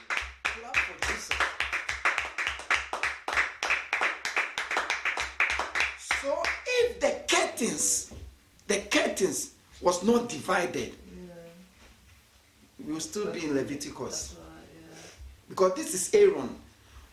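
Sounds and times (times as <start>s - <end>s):
crowd clapping hands: 0.0s - 6.7s
speech: 7.6s - 11.0s, 13.0s - 14.4s, 15.5s - 16.6s.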